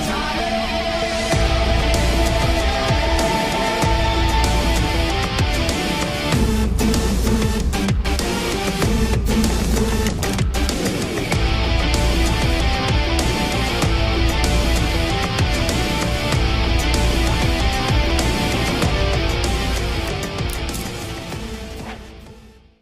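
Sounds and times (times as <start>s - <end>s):
instrumental movie background music: 0.2s - 22.7s.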